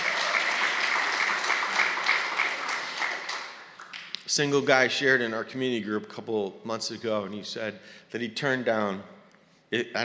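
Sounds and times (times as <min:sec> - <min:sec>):
audience applause: 0:00.0 - 0:04.1
speech: 0:04.4 - 0:10.0.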